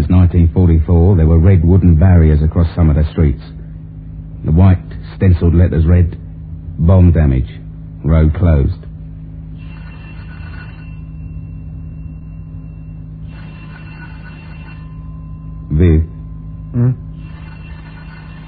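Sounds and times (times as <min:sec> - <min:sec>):
speech: 0:00.3 - 0:03.6, 0:04.4 - 0:06.2, 0:06.8 - 0:08.8, 0:15.8 - 0:17.0
telephone ringing: 0:09.6 - 0:11.4, 0:12.5 - 0:15.0, 0:17.1 - 0:18.4.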